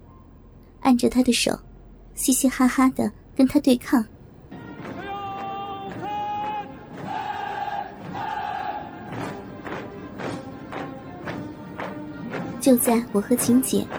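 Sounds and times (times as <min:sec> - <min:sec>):
speech: 0:00.9 - 0:04.1, 0:12.7 - 0:13.9
marching footsteps: 0:04.5 - 0:13.9
group shouting slogans: 0:04.6 - 0:09.4.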